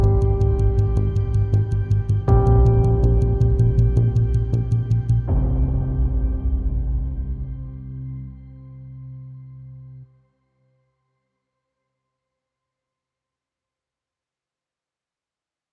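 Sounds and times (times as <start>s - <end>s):
epic hybrid music: 0.0s - 10.0s.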